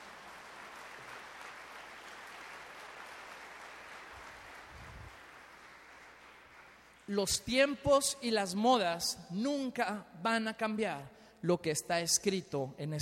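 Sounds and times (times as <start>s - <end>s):
audience applause: 0.0s - 7.1s
speech: 7.1s - 13.0s.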